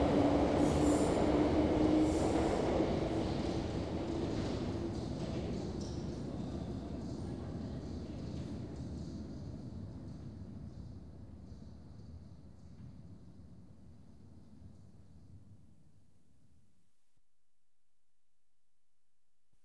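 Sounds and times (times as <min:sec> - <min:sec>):
London Underground trains: 0:00.0 - 0:11.3.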